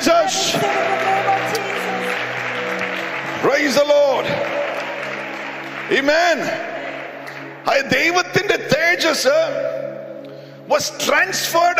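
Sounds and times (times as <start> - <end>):
congregation clapping in worship during a church service: 0.0 - 9.1
steady low humming musical drone: 0.0 - 11.7
speech: 5.9 - 6.7, 7.6 - 9.8, 10.7 - 11.7.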